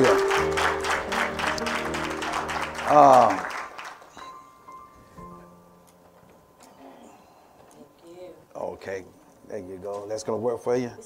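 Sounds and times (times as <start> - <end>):
people clapping hands in praise: 0.0 - 4.5
speech: 2.9 - 3.5, 10.2 - 11.0.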